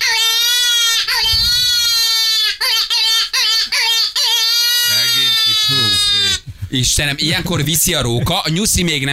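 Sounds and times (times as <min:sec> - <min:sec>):
predator call imitating distressed rabbit cry: 0:00.0 - 0:06.5
speech: 0:01.0 - 0:01.5, 0:06.7 - 0:09.1.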